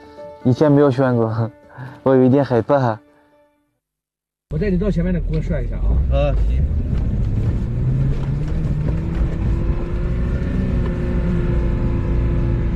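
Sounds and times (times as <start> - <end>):
speech: 0.4 - 3.0, 4.5 - 6.8
wind buffeting: 4.9 - 11.3
off-road car engine revving on sand: 5.2 - 12.7.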